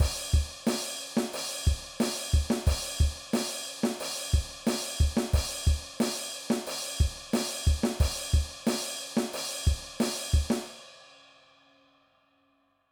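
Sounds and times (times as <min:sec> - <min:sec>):
rock drum beat: 0:00.0 - 0:10.7.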